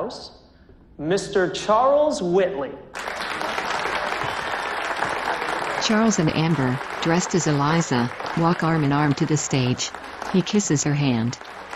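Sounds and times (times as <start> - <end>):
speech: 0.1 - 0.4, 1.0 - 3.6, 5.8 - 11.6
party crowd clapping at a mansion: 2.9 - 11.7.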